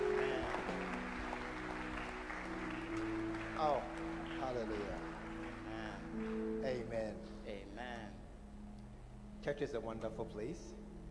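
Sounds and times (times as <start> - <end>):
audience clapping: 0.0 - 7.0
speech: 3.6 - 5.1, 9.4 - 10.8.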